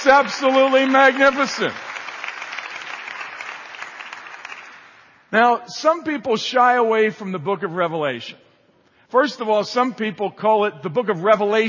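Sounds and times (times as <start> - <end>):
speech: 0.0 - 1.9, 5.3 - 8.4, 9.1 - 11.6
audience applause: 0.0 - 5.0.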